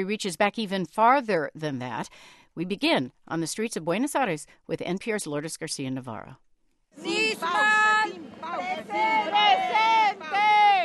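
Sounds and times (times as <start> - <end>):
speech: 0.0 - 6.4
protesters shouting for justice: 7.0 - 10.8.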